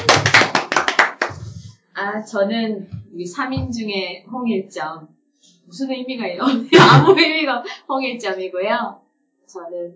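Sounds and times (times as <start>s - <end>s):
hand clapping: 0.0s - 1.6s
speech: 2.1s - 9.9s
laughter: 6.5s - 7.4s.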